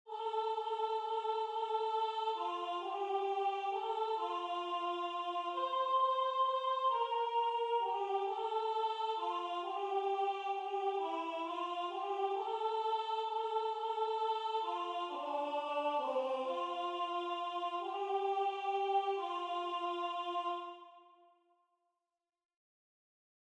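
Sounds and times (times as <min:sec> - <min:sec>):
soprano singing: 0:00.1 - 0:20.8.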